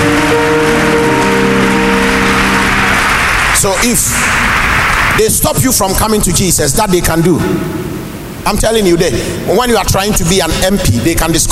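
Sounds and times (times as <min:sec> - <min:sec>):
audience clapping: 0:00.0 - 0:05.5
speech: 0:03.6 - 0:04.4, 0:05.2 - 0:07.8, 0:08.4 - 0:11.5.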